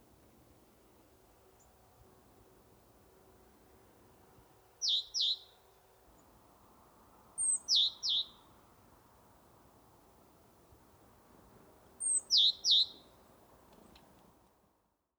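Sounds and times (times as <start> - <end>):
quiet background hiss: 0.0 - 15.1
great tit calling: 4.8 - 5.6, 7.4 - 8.4, 12.0 - 13.1.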